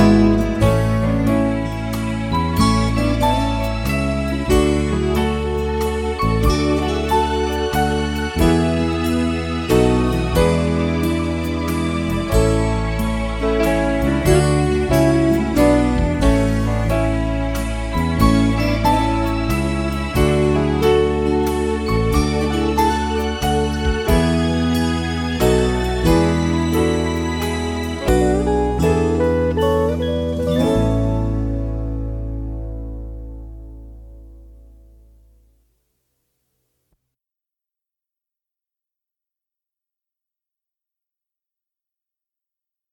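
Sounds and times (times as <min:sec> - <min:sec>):
karaoke accompaniment: 0:00.0 - 0:33.4.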